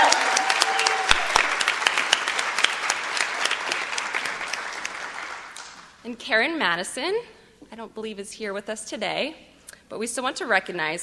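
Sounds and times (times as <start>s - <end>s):
audience applause: 0.0s - 5.9s
speech: 6.1s - 11.0s.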